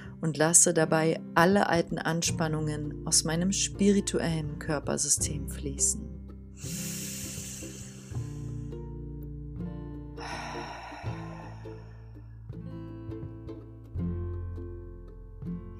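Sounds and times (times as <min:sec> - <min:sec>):
soft sustained music: 0:00.0 - 0:15.7
speech: 0:00.2 - 0:06.8
deep breathing out during a guided relaxation exercise: 0:06.6 - 0:08.8, 0:10.2 - 0:12.4.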